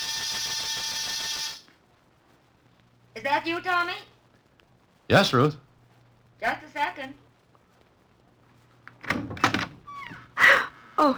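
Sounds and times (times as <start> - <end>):
apartment door buzzer ringing: 0.0 - 1.6
speech: 3.2 - 4.1, 5.1 - 5.6, 6.4 - 7.2, 11.0 - 11.1.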